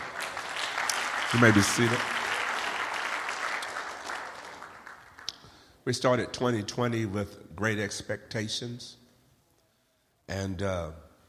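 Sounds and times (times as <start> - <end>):
audience clapping hands: 0.0 - 5.7
speech: 1.3 - 2.2, 5.8 - 9.0, 10.3 - 11.0.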